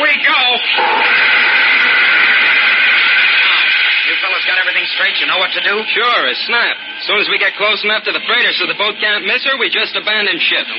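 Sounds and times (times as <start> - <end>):
spaceship jets starting up: 0.7 - 8.8
speech: 4.9 - 10.7.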